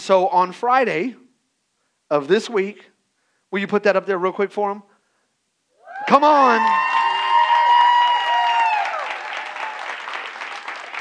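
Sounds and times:
speech: 0:00.0 - 0:01.2, 0:02.1 - 0:02.9, 0:03.5 - 0:04.9, 0:06.1 - 0:06.8
audience clapping: 0:06.0 - 0:10.9.

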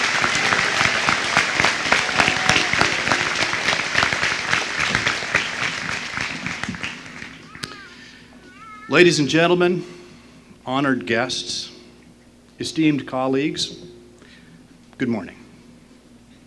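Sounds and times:
crowd applauding: 0:00.0 - 0:08.2
speech: 0:08.9 - 0:09.9, 0:10.7 - 0:11.7, 0:12.6 - 0:13.9, 0:15.0 - 0:15.4.

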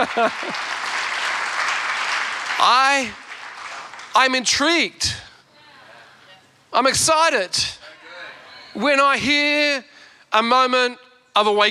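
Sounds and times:
speech: 0:00.0 - 0:00.8, 0:02.6 - 0:03.2, 0:04.2 - 0:05.3, 0:06.7 - 0:07.8, 0:08.8 - 0:11.6
audience clapping: 0:00.0 - 0:04.4.

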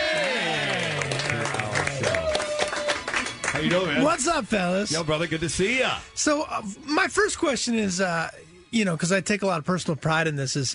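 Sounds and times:
studio audience applause welcoming a guest: 0:00.0 - 0:04.6
speech: 0:03.6 - 0:10.7.

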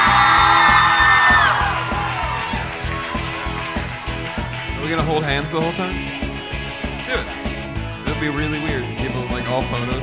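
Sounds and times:
crowd cheering: 0:00.0 - 0:05.3
speech: 0:04.9 - 0:06.2, 0:08.2 - 0:10.0.

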